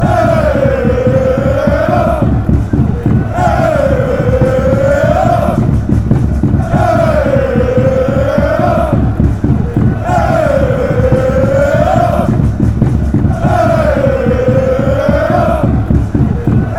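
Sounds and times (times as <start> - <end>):
people chanting: 0.0 - 16.7.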